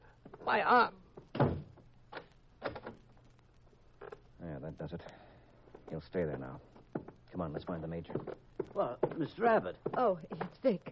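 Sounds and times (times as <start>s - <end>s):
quiet hum: 0.0s - 10.9s
speech: 0.5s - 1.0s, 4.8s - 5.2s, 5.9s - 6.7s, 7.3s - 10.9s
door being shut, radio drama sound effect: 1.4s - 1.8s.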